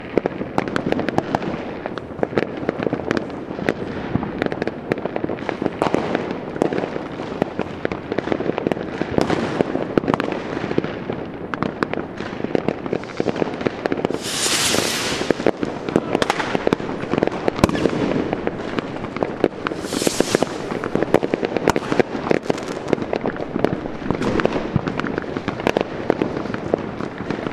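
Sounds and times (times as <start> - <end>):
large fireworks: 0.0 - 27.5.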